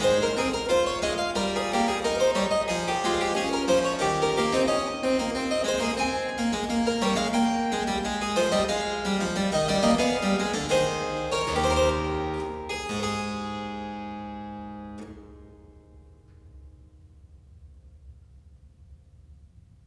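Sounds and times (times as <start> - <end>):
three-part keyboard invention in A major: 0.0 - 15.2.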